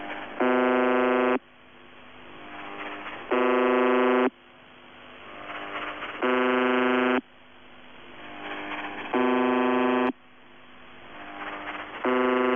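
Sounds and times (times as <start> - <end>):
numbers station buzzer: 0.3 - 1.4, 3.2 - 4.4, 6.2 - 7.2, 8.2 - 10.2, 11.4 - 12.5.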